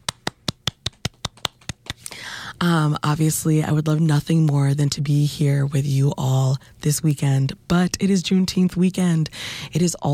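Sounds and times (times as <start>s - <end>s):
person clapping: 0.0s - 2.2s
speech: 2.6s - 10.1s.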